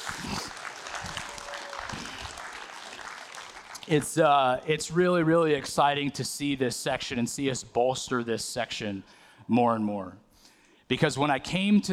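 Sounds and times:
audience applause: 0.0s - 4.2s
speech: 3.9s - 10.2s, 10.9s - 11.9s.

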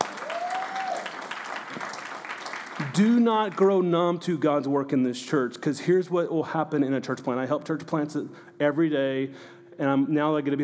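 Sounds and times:
audience applause: 0.0s - 3.6s
speech: 2.9s - 10.6s.

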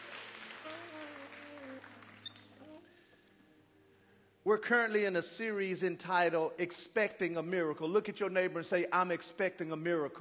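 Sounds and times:
hand clapping from audience: 0.0s - 2.9s
speech: 4.4s - 10.2s.

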